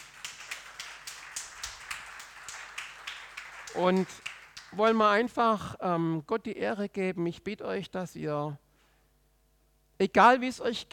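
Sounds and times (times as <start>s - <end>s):
audience applause: 0.0s - 4.8s
speech: 3.8s - 8.6s, 10.0s - 10.9s.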